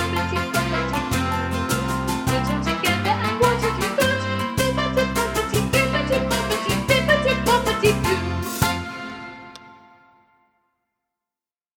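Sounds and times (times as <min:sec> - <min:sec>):
person singing: 0:00.0 - 0:01.6, 0:02.2 - 0:08.6.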